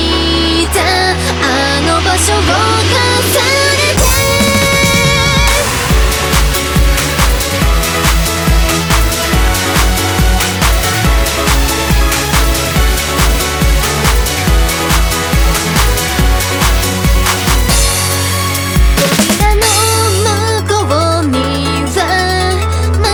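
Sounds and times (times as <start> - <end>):
distorted overdrive: 0.1 - 23.0.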